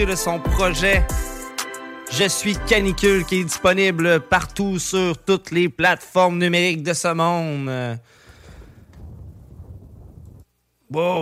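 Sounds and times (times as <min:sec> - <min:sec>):
speech: 0:00.0 - 0:01.4, 0:02.1 - 0:08.2, 0:10.9 - 0:11.2
thunderclap: 0:08.5 - 0:10.5.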